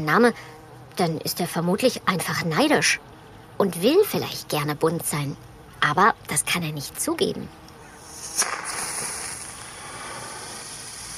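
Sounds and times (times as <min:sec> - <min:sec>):
speech: 0:00.0 - 0:07.6
flare rocket firework launching with a sharp crack: 0:08.0 - 0:11.1.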